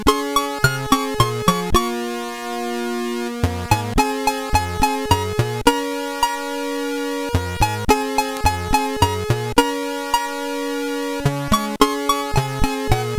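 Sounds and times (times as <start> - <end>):
SID chip music on a CSG8580R5: 0.0 - 13.1.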